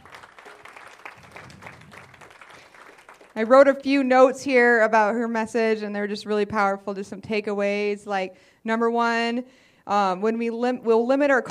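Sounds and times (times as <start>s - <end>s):
round of applause: 0.0s - 3.5s
speech: 3.4s - 11.5s.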